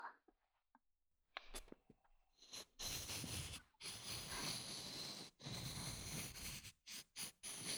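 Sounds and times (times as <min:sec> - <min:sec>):
brush calligraphy writing: 0:02.4 - 0:07.7
ink stick grinding on an inkstone: 0:02.4 - 0:07.7.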